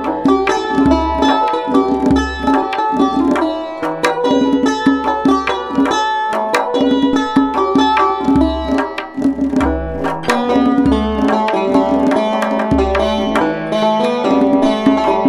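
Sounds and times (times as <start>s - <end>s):
tar playing: 0.0s - 15.2s.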